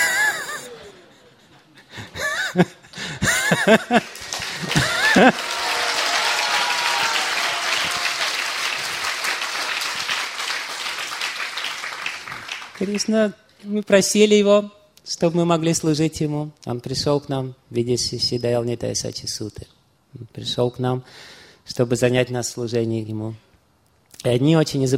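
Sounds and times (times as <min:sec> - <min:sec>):
laughter: 0:00.0 - 0:08.9
speech: 0:02.6 - 0:02.8, 0:03.5 - 0:05.5, 0:12.8 - 0:23.5, 0:24.2 - 0:24.9
sparse scattered applause: 0:03.3 - 0:13.2.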